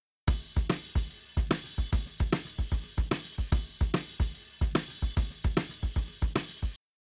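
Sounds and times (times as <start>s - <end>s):
shuffle drums: 0.3s - 6.8s.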